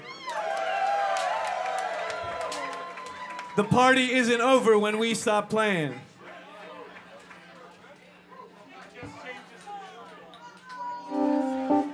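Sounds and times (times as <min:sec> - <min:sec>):
audience cheering: 0:00.0 - 0:06.0
speech: 0:03.6 - 0:06.1.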